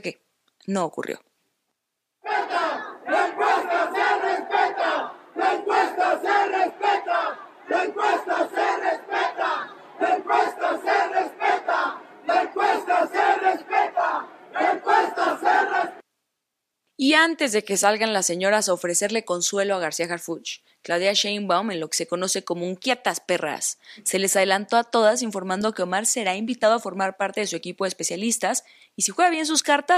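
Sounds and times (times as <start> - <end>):
speech: 0.0 - 1.3, 17.0 - 29.9
supporters' crowd chanting in protest: 2.2 - 16.0.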